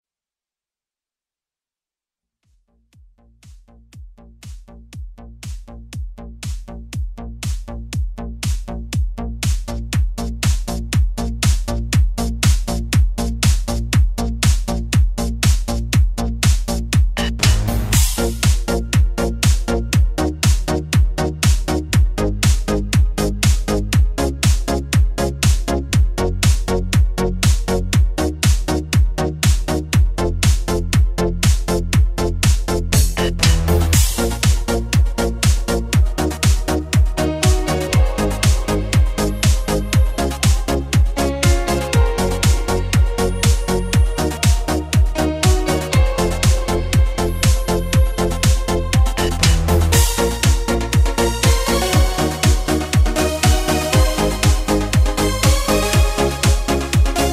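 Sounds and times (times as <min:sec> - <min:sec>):
italo disco dance mix: 0:05.4 - 0:57.3.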